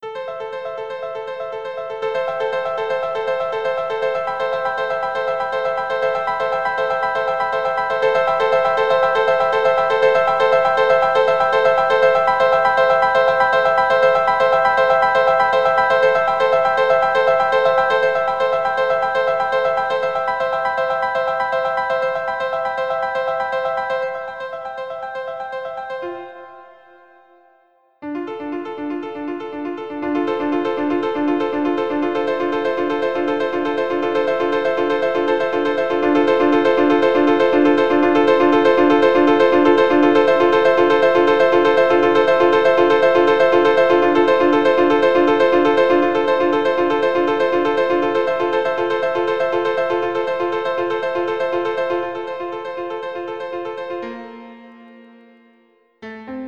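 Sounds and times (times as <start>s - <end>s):
piano superplay: 0.0s - 56.4s.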